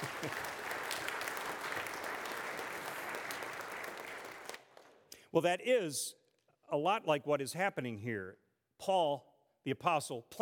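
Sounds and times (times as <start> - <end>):
audience clapping: 0.0 - 5.1
speech: 0.2 - 0.5, 5.3 - 10.3.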